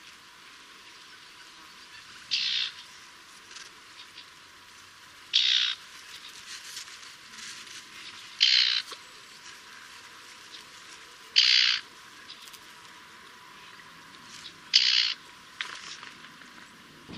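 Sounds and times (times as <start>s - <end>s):
Eurasian reed warbler singing: 0.8s - 3.0s, 5.3s - 6.5s, 8.0s - 15.5s.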